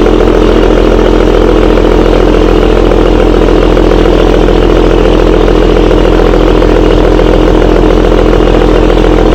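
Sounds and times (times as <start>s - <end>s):
motor running: 0.0s - 9.3s.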